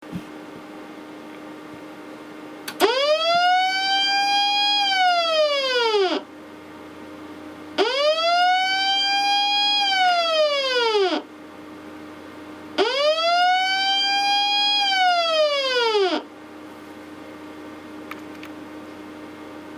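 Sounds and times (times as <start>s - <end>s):
siren: 2.8s - 6.3s, 7.8s - 11.3s, 12.8s - 16.3s.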